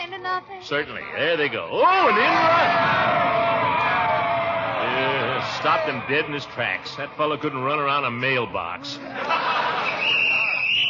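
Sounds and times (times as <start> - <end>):
crowd noise and murmuring voices: 0.0 - 10.8
speech: 0.2 - 3.8, 4.9 - 10.0
laughter: 2.0 - 10.8
referee's whistle blast on a football field: 9.9 - 10.8.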